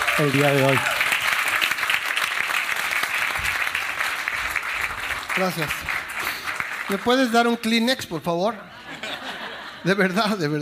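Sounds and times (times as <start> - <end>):
audience clapping: 0.0 - 7.8
speech: 0.2 - 0.9, 5.4 - 6.0, 6.9 - 8.7, 9.8 - 10.5
laughter: 8.5 - 10.5.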